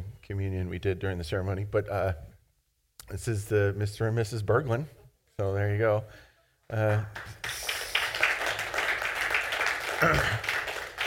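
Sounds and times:
speech: 0:00.3 - 0:02.3, 0:03.1 - 0:07.5, 0:10.0 - 0:10.5
clapping: 0:06.9 - 0:11.0.

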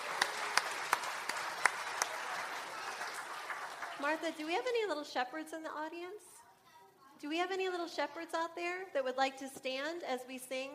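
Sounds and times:
audience applause for children dressed as shepherds at a Christmas Eve service: 0:00.0 - 0:04.9
speech: 0:04.0 - 0:06.4, 0:07.2 - 0:10.7.

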